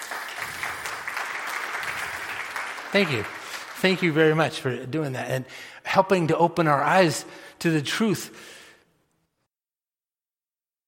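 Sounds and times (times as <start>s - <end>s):
applause: 0.0s - 5.2s
speech: 2.9s - 8.6s.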